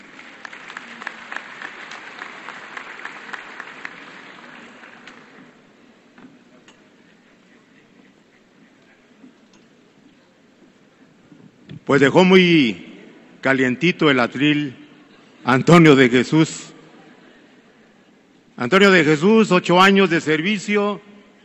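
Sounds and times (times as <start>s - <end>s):
audience applause: 0.0s - 5.6s
speech: 11.9s - 14.8s, 15.4s - 16.6s, 18.7s - 21.1s.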